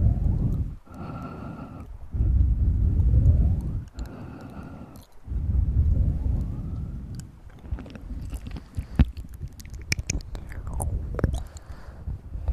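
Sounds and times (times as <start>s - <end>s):
heavy low rushing breaths: 0.6s - 9.4s, 10.4s - 12.5s
wet mouth clicks, smacks and chewing-like pops: 3.6s - 5.3s, 7.1s - 11.8s.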